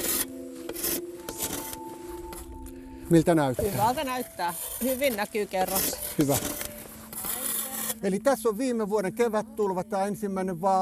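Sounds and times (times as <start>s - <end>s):
saw blade scraping to clean a core surface: 0.0s - 2.5s, 3.6s - 8.2s
speech: 3.1s - 6.6s, 8.0s - 10.8s.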